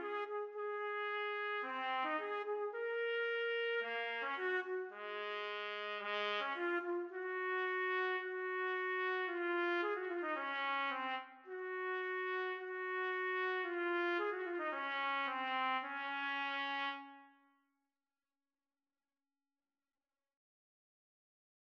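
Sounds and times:
trumpet duet: 0:00.0 - 0:17.3.

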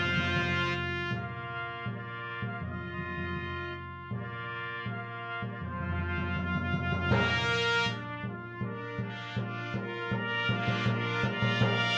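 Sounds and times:
imperial fanfare on trumpets: 0:00.0 - 0:11.9.

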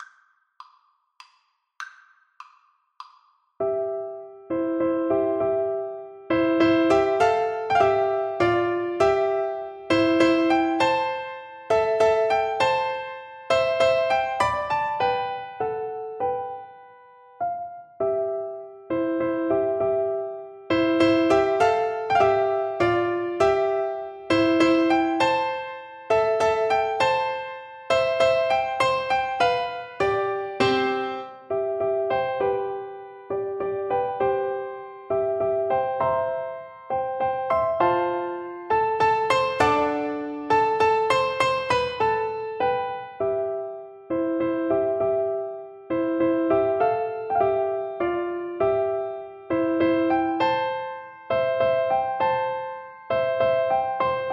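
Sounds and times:
piano duet: 0:03.6 - 0:54.3.

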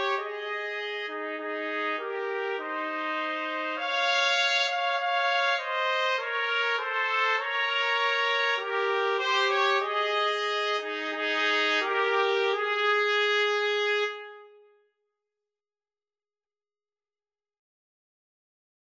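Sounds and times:
trumpet trio playing: 0:00.0 - 0:14.7.

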